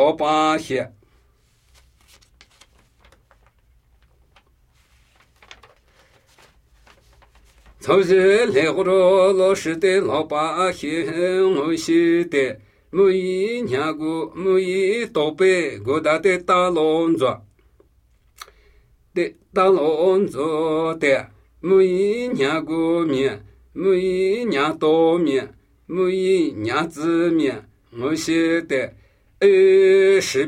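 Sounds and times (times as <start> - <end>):
Namuyi Tibetan ritual chanting: 0.0 - 1.0, 7.8 - 17.4, 19.2 - 30.4.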